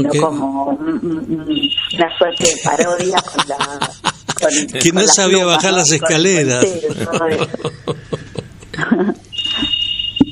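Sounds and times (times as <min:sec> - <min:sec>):
speech: 0:00.0 - 0:08.0
alarm ringing in the background: 0:01.5 - 0:03.0, 0:09.3 - 0:10.3
laughter: 0:02.4 - 0:04.8, 0:06.6 - 0:09.2.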